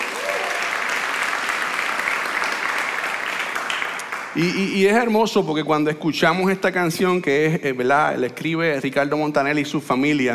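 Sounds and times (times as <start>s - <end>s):
audience applause: 0.0s - 4.6s
speech: 4.4s - 10.3s.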